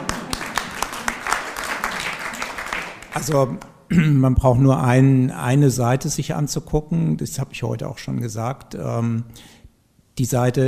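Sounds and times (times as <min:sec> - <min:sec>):
audience applause: 0:00.0 - 0:03.4
speech: 0:03.2 - 0:09.6, 0:10.2 - 0:10.6.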